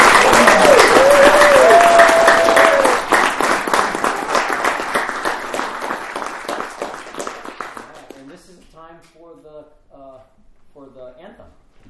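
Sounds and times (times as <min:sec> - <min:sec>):
audience applause: 0:00.0 - 0:08.2.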